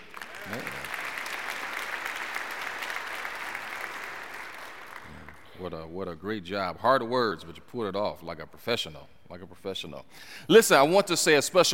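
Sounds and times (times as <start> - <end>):
audience applause: 0.0 - 5.4
speech: 5.6 - 11.7.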